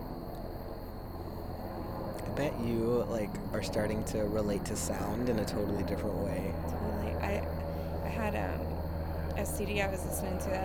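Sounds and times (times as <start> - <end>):
helicopter passing overhead: 0.0 - 10.6
speech: 2.4 - 8.8, 9.4 - 10.6.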